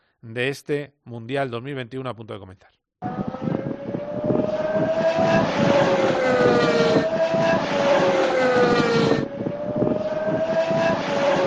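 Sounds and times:
speech: 0:00.2 - 0:03.2
Mercedes Formula 1 engine screaming at high revs with gear shifts: 0:04.1 - 0:11.4.

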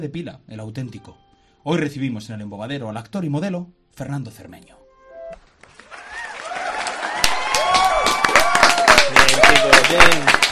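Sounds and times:
speech: 0:00.0 - 0:04.8, 0:09.6 - 0:10.5
canned applause: 0:05.6 - 0:10.5
crowd cheering: 0:05.7 - 0:10.5.

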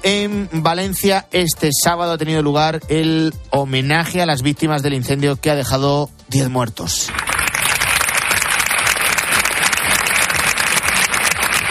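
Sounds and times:
speech: 0:00.0 - 0:07.4
long applause in the town square of Valencia City Hall: 0:07.1 - 0:11.6.

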